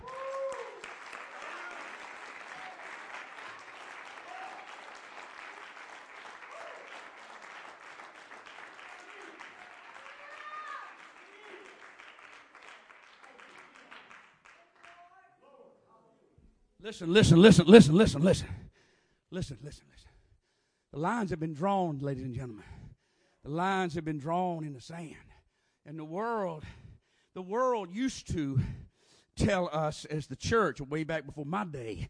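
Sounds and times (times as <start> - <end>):
audience clapping: 0.0 - 15.2
speech: 16.8 - 18.6, 19.3 - 20.1, 20.9 - 22.8, 23.4 - 25.2, 25.8 - 26.8, 27.4 - 28.8, 29.4 - 32.0.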